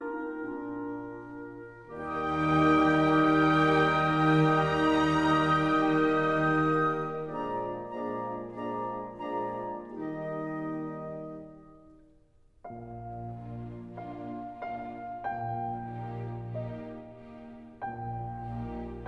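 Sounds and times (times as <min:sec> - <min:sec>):
slow piano concerto movement: 0:00.0 - 0:19.0.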